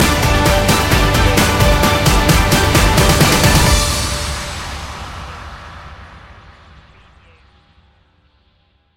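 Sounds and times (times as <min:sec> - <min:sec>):
sports hero stinger: 0:00.0 - 0:05.6.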